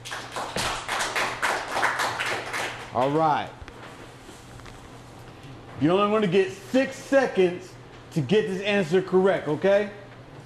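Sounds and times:
audience clapping hands: 0.0s - 3.2s
speech: 3.0s - 3.6s, 5.8s - 10.0s.

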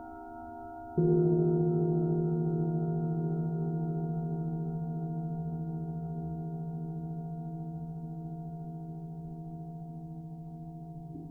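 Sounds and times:
Tibetan singing bowls ringing: 0.0s - 8.8s.

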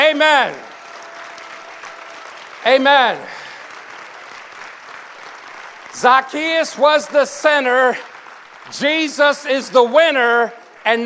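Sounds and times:
audience applause: 0.0s - 11.0s
speech: 0.2s - 0.7s, 2.6s - 3.4s, 6.0s - 8.1s, 8.7s - 11.0s.

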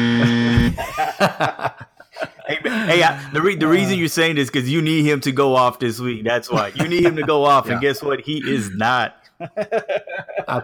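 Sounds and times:
harsh buzzer: 0.0s - 0.8s
people chuckling: 0.2s - 4.0s, 6.5s - 10.6s
speech: 0.7s - 1.9s, 2.7s - 10.6s.

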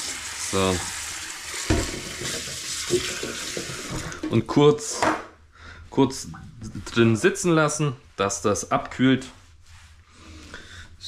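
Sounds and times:
cold water poured over boiled eggs: 0.0s - 4.3s
speech: 0.5s - 1.0s, 2.9s - 5.2s, 6.0s - 9.4s.

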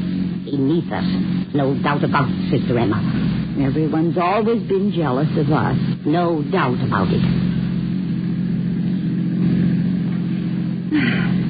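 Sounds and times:
car driving with low engine rumble: 0.0s - 11.4s
speech: 0.5s - 7.4s, 10.9s - 11.4s.

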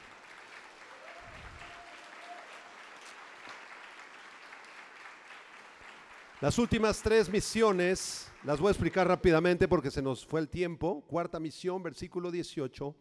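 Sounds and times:
audience applauding: 0.0s - 9.6s
speech: 6.4s - 12.9s.

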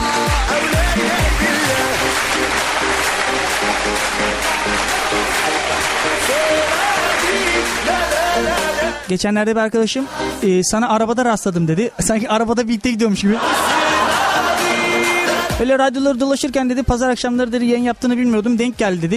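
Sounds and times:
Turkish comedy talk show audience clapping: 0.6s - 8.8s
speech: 9.1s - 13.8s, 15.6s - 19.1s
laughter: 13.3s - 14.7s.

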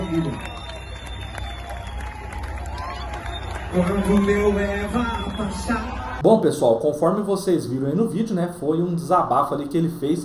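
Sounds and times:
crowd applause: 0.0s - 6.2s
speech: 0.1s - 0.6s, 3.7s - 10.2s.

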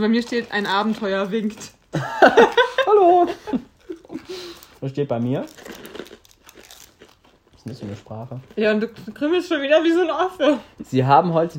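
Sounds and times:
speech: 0.0s - 3.6s, 4.3s - 5.7s, 7.6s - 11.5s
plastic wrapper crinkling as it is pulled open: 0.0s - 8.6s
laughter: 2.0s - 4.3s.

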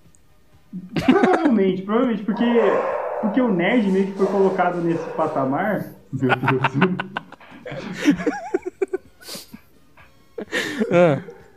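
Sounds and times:
speech: 0.7s - 8.4s, 10.9s - 11.3s
laughter: 0.8s - 9.6s, 10.4s - 11.3s
dog barking: 2.3s - 6.1s, 11.0s - 11.5s.

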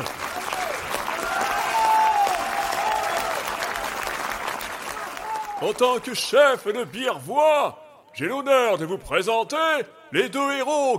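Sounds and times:
crowd applause: 0.0s - 6.0s
speech: 5.6s - 10.9s.

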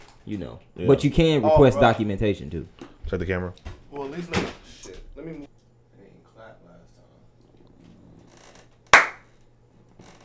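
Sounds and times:
speech: 0.2s - 5.6s
hand clap: 8.9s - 9.3s.

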